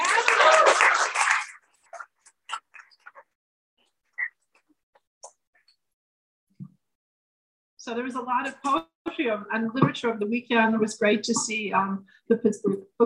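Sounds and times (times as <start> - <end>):
crowd applause: 0.0 - 2.1
speech: 7.9 - 13.0.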